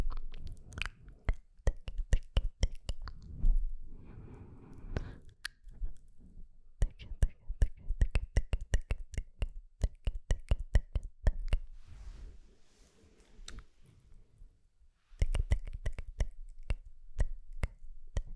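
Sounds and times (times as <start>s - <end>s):
rapid sk and tk mouth clicks: 0.0s - 3.5s, 4.8s - 6.1s, 6.8s - 11.7s, 15.2s - 18.3s.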